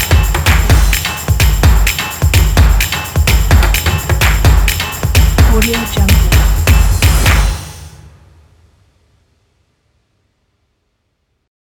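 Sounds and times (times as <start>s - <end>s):
percussion: 0.0s - 8.4s.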